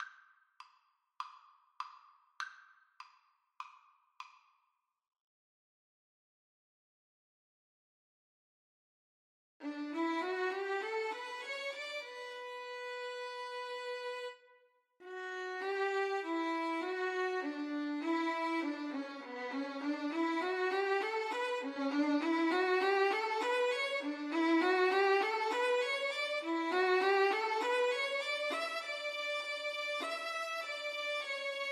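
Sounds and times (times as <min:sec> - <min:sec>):
violin duet: 0:09.6 - 0:14.4, 0:15.0 - 0:31.7.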